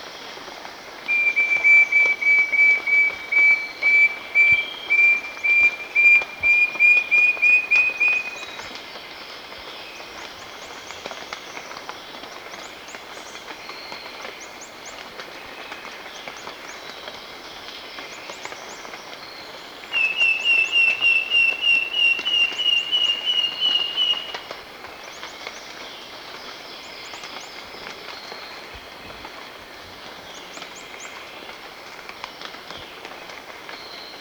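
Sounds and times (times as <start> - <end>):
Wing-banded wren call in Ecuador: 1.1 - 8.7, 19.9 - 24.5.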